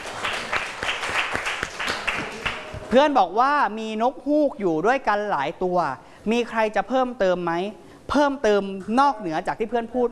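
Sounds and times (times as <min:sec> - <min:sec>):
classroom applause for a classmate: 0:00.0 - 0:02.9
speech: 0:02.9 - 0:10.0.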